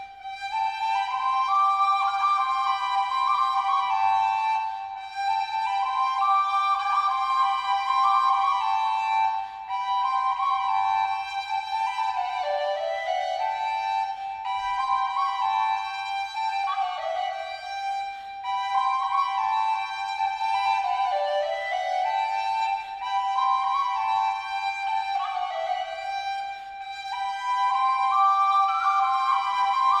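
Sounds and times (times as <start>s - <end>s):
double flute playing: 0.0s - 29.9s.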